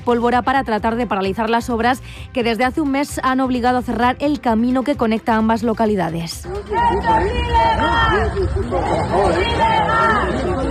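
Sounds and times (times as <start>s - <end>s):
speech: 0.0s - 10.6s
protesting crowd shouting and chanting: 6.4s - 10.6s.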